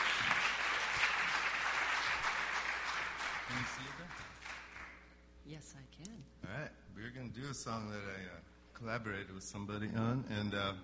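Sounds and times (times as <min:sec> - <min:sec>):
audience applause welcoming performers at House of Mercy: 0:00.0 - 0:05.0
speech: 0:03.5 - 0:04.5, 0:05.4 - 0:10.8.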